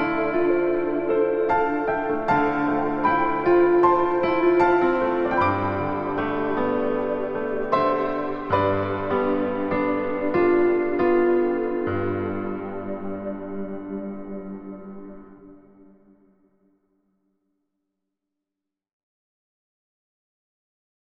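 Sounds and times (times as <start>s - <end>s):
piano: 0.0s - 16.4s.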